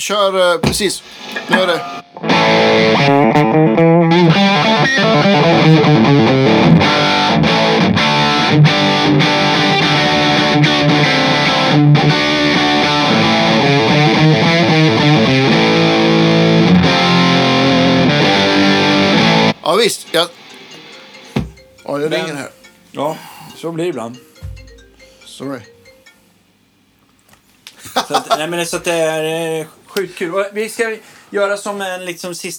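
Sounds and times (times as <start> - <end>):
speech: 0.0 - 6.4, 19.7 - 20.4, 21.9 - 24.3, 25.4 - 25.7, 28.0 - 32.5
distorted metal guitar riffs: 0.6 - 22.6
laughter: 27.8 - 28.9.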